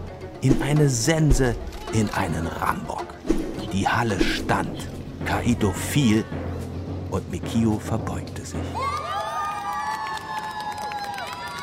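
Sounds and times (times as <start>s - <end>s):
speech: 0.4s - 3.1s, 3.7s - 6.5s, 7.2s - 8.9s
crowd cheering: 8.6s - 11.6s.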